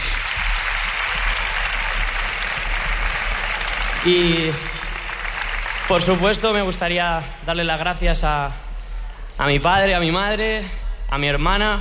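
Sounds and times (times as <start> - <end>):
applause: 0.0 - 7.3
speech: 4.0 - 4.7, 5.9 - 8.6, 9.4 - 11.7.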